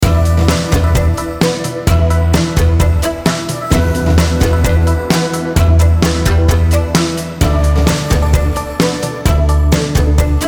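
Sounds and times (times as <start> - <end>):
kung fu music loop: 0.0 - 10.4.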